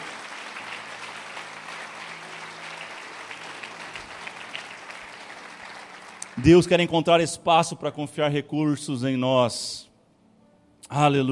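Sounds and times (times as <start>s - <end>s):
audience applauding: 0.0s - 7.0s
speech: 6.4s - 9.9s, 10.9s - 11.3s.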